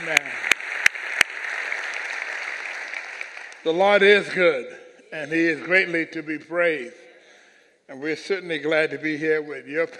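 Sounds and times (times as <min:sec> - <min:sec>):
audience applause: 0:00.0 - 0:04.2
speech: 0:03.6 - 0:07.0, 0:07.9 - 0:09.9.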